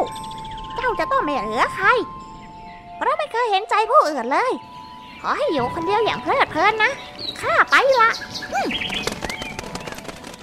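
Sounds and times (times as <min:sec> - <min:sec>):
speech: 0:00.9 - 0:02.2, 0:03.0 - 0:09.2
bird wings flapping as it flies away: 0:08.0 - 0:10.4.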